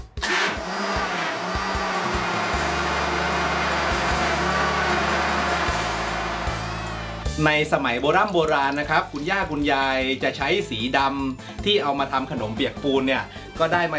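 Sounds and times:
blender grinding crushed coconut husk finely: 0.1s - 7.3s
speech: 7.4s - 13.9s.

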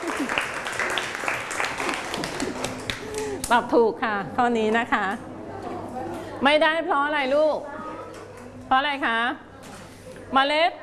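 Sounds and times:
classroom clapping for a group: 0.0s - 3.6s
speech: 3.5s - 5.3s, 6.4s - 7.7s, 8.7s - 9.4s, 10.3s - 10.8s.

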